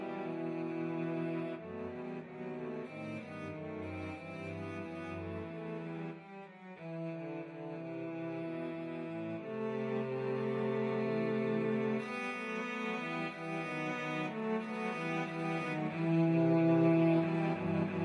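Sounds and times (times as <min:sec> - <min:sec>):
cello trio playing: 0:00.0 - 0:18.0.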